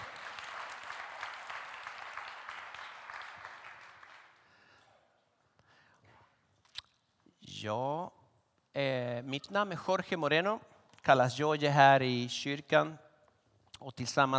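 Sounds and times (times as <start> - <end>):
audience applause: 0.0 - 4.5
speech: 7.6 - 8.2, 8.8 - 13.0, 13.8 - 14.3.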